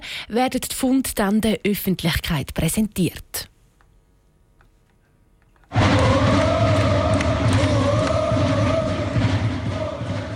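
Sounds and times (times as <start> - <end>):
speech: 0.2 - 3.5
football fans celebrating at a train station: 5.7 - 10.3.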